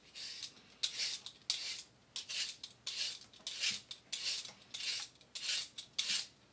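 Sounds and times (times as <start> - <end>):
knife sharpened on a whetstone: 0.1 - 6.3.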